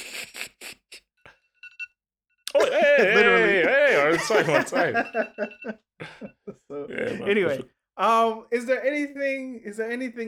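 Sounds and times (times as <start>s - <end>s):
speech: 2.6s - 3.3s, 4.2s - 10.2s
timer alarm going off: 4.5s - 6.5s.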